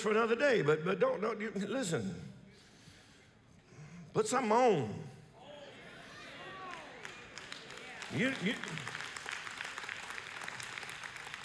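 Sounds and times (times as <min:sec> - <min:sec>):
speech: 0:00.0 - 0:02.4, 0:04.2 - 0:05.1, 0:08.1 - 0:09.0
sparse clapping from a small audience: 0:06.1 - 0:11.4.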